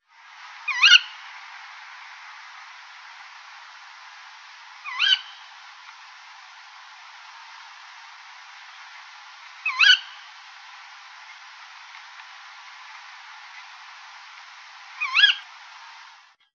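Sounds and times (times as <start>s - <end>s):
tawny owl call: 0.6s - 1.4s, 4.8s - 6.0s, 8.9s - 11.4s, 14.9s - 15.6s.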